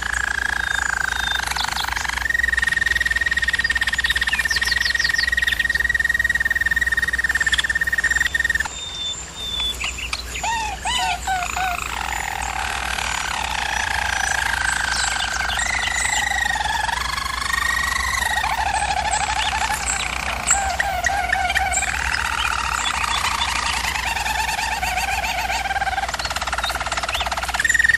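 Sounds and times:
German Roller canary singing: 0.0 - 27.9.

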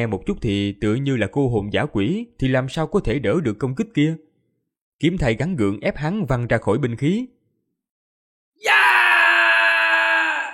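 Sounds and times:
speech: 0.0 - 4.3, 5.0 - 7.4, 8.6 - 8.9
person screaming in anguish: 8.6 - 10.5.

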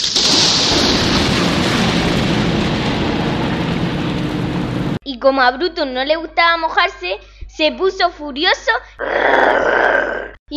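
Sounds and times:
sudden rain shower: 0.0 - 5.0
speech: 5.2 - 10.5.

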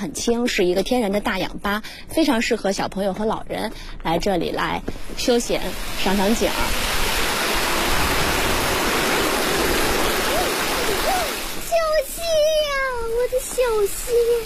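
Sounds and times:
speech: 0.0 - 7.0, 13.2 - 14.4
flowing mountain spring stream water: 5.1 - 12.2.

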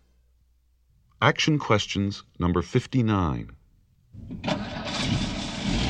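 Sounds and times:
speech: 1.2 - 3.5
car engine cranking, starting and idling: 4.4 - 5.7.

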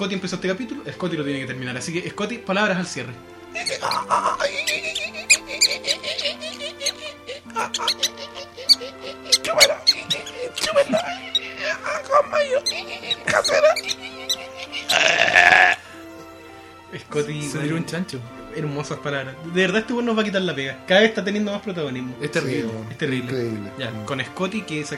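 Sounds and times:
speech: 0.0 - 6.4, 7.6 - 8.3, 9.4 - 10.0, 10.6 - 14.1, 16.9 - 24.9
laughter: 3.6 - 15.9
cat meowing and yowling: 7.6 - 15.7.

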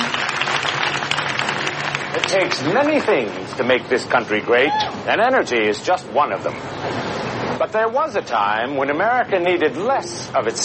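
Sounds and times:
studio audience applauding: 0.0 - 3.5
speech: 2.3 - 7.0, 7.6 - 10.6.

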